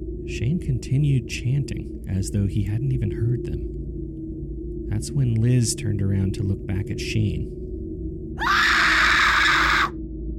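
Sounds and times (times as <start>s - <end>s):
speech: 0.3s - 3.8s, 4.9s - 7.6s
woman screaming: 8.4s - 10.0s.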